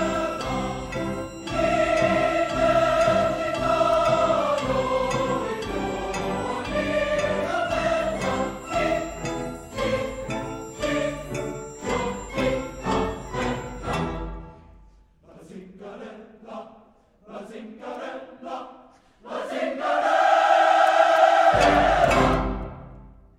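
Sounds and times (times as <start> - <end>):
community choir singing: 0.0 - 23.2.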